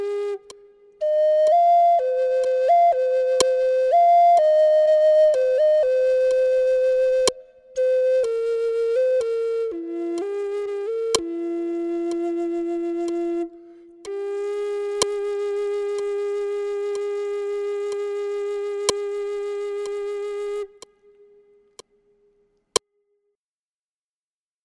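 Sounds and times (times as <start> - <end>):
Zuni sunrise flute: 0.0 - 20.9.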